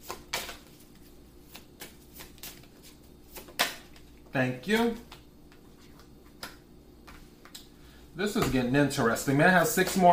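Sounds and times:
tarot cards being shuffled and dealt: 0.0s - 6.5s
speech: 4.4s - 5.2s, 8.2s - 10.1s.

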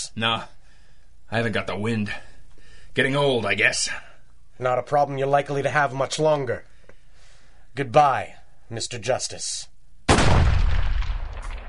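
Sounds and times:
speech: 0.0s - 0.6s, 1.3s - 2.3s, 3.0s - 6.7s, 7.8s - 9.7s
gunshot: 10.1s - 11.6s.

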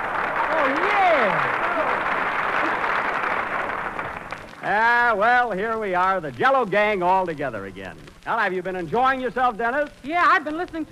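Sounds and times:
audience applause: 0.0s - 5.1s
speech: 4.7s - 10.8s.

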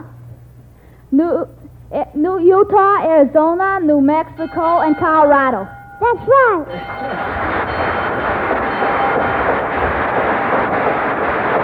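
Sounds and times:
speech: 1.1s - 7.9s
old school bell ringing: 4.0s - 11.6s.

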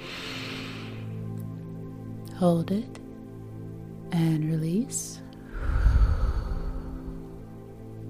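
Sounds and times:
deep breath in: 0.0s - 1.2s, 5.4s - 7.5s
speech: 2.4s - 3.0s, 4.1s - 5.2s.

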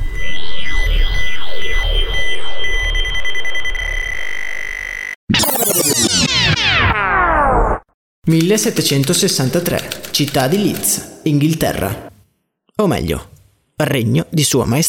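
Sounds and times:
steady high tone: 0.0s - 7.4s
time machine travel sound effect warbling electronic swoops: 0.0s - 7.8s
speech: 8.3s - 12.1s, 12.8s - 14.8s.

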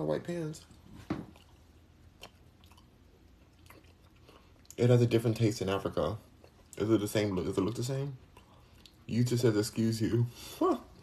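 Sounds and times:
speech: 0.0s - 0.8s, 4.8s - 8.2s, 9.1s - 11.0s
soft wet chewing of jackfruit: 0.6s - 4.8s, 5.6s - 9.1s.

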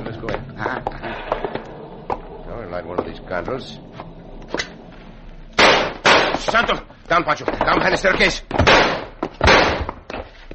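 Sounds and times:
speech: 2.8s - 4.0s, 6.5s - 9.0s
gunshots fired from top of stairs: 5.6s - 6.5s, 8.6s - 10.0s.

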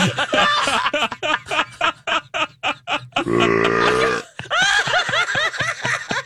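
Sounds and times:
laughter: 0.0s - 6.2s
long low croaking burp sound effect: 3.2s - 4.3s.

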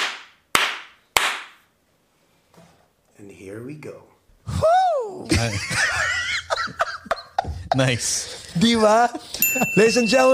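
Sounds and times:
single hand clap for sync: 0.0s - 1.6s
speech: 3.2s - 6.8s, 7.7s - 10.3s
laughter: 5.2s - 10.0s.

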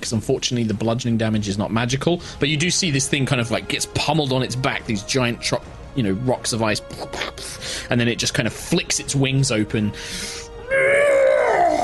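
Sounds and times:
speech: 0.0s - 10.8s
breathy intake: 7.4s - 7.9s, 9.9s - 10.6s
person imitating a monster's enraged roar: 10.6s - 11.8s.

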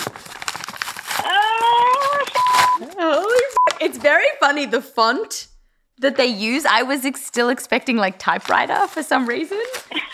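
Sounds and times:
crinkly paper rustling from opening a manila folder: 0.0s - 3.6s, 8.3s - 10.1s
speech: 3.9s - 10.1s.

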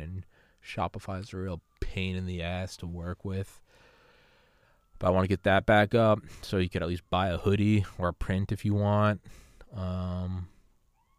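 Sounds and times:
sirens going off outside: 0.0s - 11.1s
speech: 0.6s - 3.8s, 5.0s - 10.5s.

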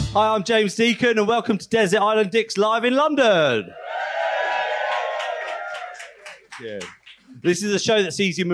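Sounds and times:
speech: 0.1s - 3.8s, 6.6s - 8.5s
crowd cheering and whooping: 3.7s - 6.5s
gentle audience applause: 3.8s - 7.3s.

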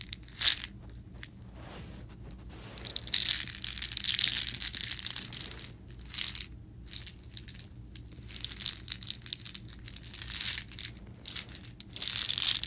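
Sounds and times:
low steady hum: 0.0s - 12.6s
soda candies handled and crunched: 2.8s - 12.6s.

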